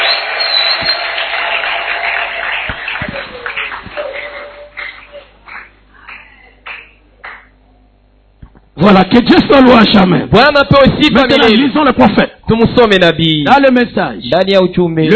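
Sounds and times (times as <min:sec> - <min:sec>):
crowd applause: 0:00.0 - 0:07.5
speech: 0:08.8 - 0:15.1.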